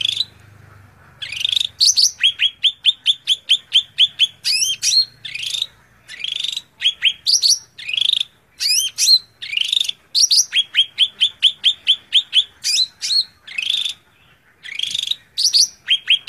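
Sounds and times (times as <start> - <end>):
Greater green leafbird song: 0.0 - 0.5, 1.2 - 16.2.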